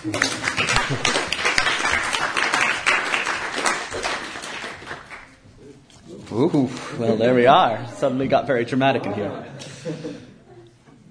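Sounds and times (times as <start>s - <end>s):
speech: 0.0s - 1.2s, 6.4s - 10.1s
audience round of applause: 0.0s - 5.4s.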